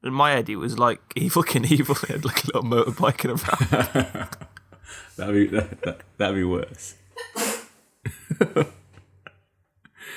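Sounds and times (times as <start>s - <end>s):
speech: 0.0s - 7.4s, 8.0s - 8.8s
laughter: 2.8s - 6.1s, 8.1s - 9.4s
person sneezing: 7.2s - 7.8s.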